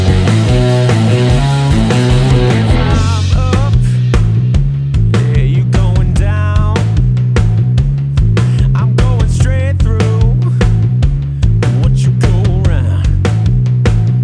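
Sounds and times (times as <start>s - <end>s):
pop rock music: 0.0s - 14.2s.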